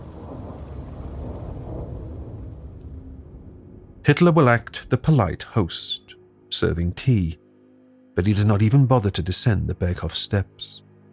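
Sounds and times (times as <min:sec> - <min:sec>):
rain: 0:00.0 - 0:04.6
rolling thunder: 0:00.0 - 0:04.7
speech: 0:04.0 - 0:07.4, 0:08.2 - 0:10.9.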